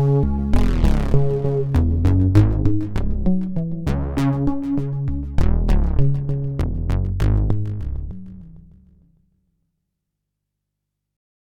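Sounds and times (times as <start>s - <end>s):
dual path PWM synthesizer sequence: 0.0s - 7.8s.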